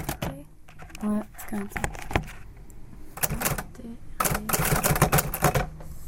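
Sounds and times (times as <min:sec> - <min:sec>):
speech: 0:01.0 - 0:02.3
keys struck hard on a stiff typewriter: 0:03.2 - 0:05.7.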